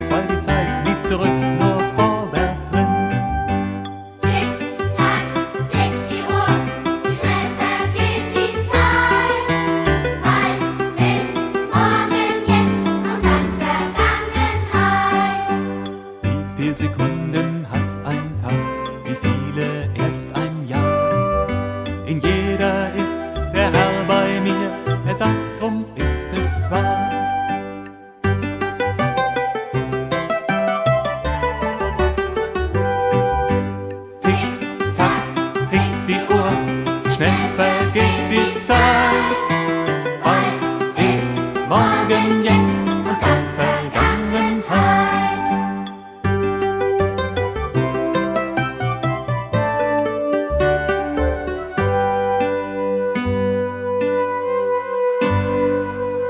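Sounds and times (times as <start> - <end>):
song: 0.0 - 56.2.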